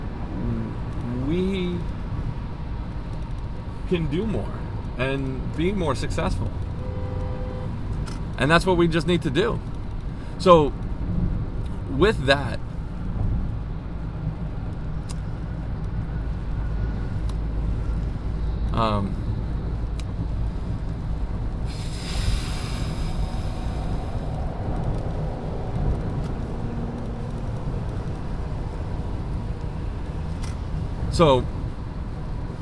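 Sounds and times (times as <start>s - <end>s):
road traffic in the rain: 0.0s - 32.5s
speech: 3.9s - 6.7s, 8.4s - 9.7s, 10.4s - 10.8s, 11.9s - 12.7s, 18.8s - 19.2s, 31.2s - 31.6s
vehicle swishing past on a wet road: 21.6s - 31.1s.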